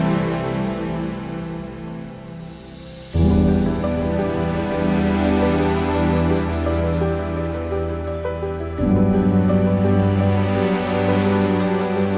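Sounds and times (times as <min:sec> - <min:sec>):
atmospheric piano: 0:00.0 - 0:12.1.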